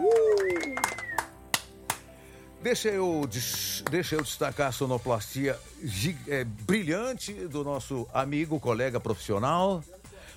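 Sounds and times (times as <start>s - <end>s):
hands clapping: 0.0s - 2.1s, 3.2s - 4.4s
speech: 2.6s - 10.0s.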